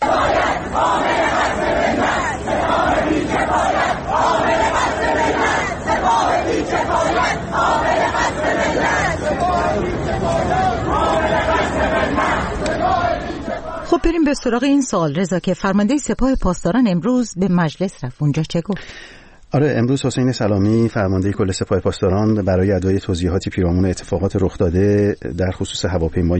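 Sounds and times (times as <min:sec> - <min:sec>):
students chanting slogans at a protest in Tehran: 0:00.0 - 0:14.4
speech: 0:14.2 - 0:26.3.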